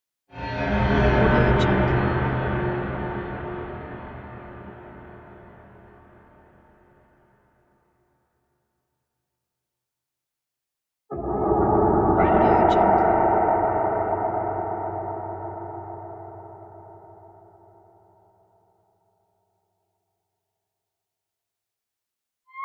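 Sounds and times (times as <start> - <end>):
discomfort ambience for a movie: 0.4 - 6.8, 11.1 - 18.0.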